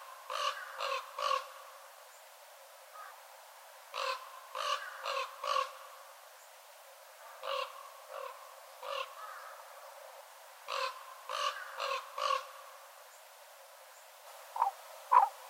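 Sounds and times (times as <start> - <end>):
Northern raven cawing: 0.3 - 1.5, 3.0 - 3.2, 3.9 - 5.8, 7.4 - 9.6, 10.7 - 12.6, 14.5 - 15.4.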